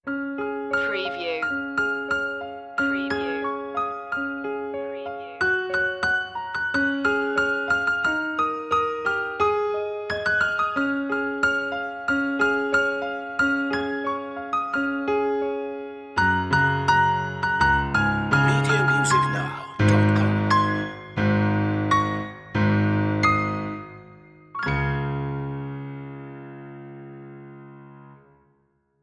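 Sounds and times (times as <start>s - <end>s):
Christmas song piano loop: 0.0s - 28.6s.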